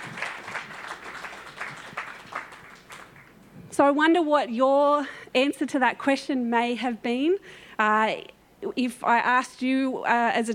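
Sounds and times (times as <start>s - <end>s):
crowd applause: 0.0s - 3.3s
speech: 3.8s - 10.5s.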